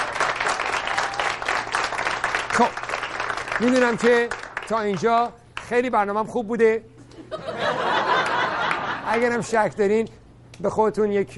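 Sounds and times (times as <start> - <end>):
audience clapping in honour of a performer: 0.0 - 5.8, 8.1 - 9.6
speech: 2.6 - 2.8, 3.6 - 6.9, 9.2 - 11.3
laughter: 7.0 - 9.4.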